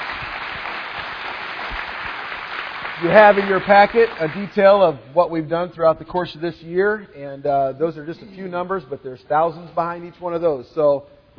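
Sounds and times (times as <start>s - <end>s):
audience applause for a colleague at a meeting: 0.0s - 4.6s
speech: 3.0s - 11.3s.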